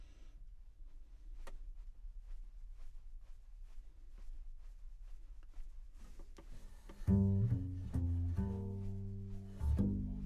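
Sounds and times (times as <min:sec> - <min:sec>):
contrabass: 0:07.0 - 0:10.2.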